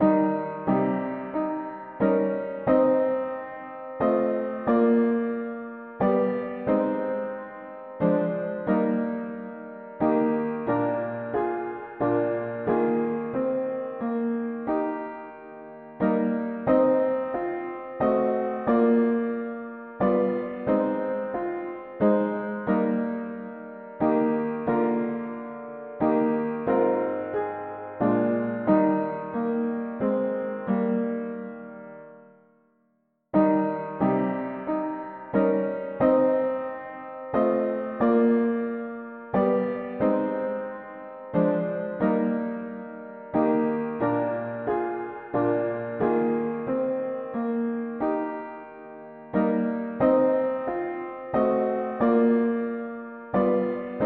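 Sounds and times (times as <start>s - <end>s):
mono piano playing hymns: 0.0s - 32.4s, 33.4s - 54.0s.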